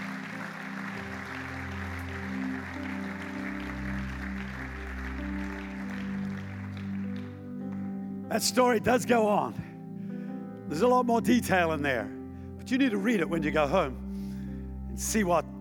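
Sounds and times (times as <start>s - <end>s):
audience clapping and applauding: 0.0s - 8.5s
speech: 8.3s - 9.6s, 10.7s - 14.0s, 15.0s - 15.5s.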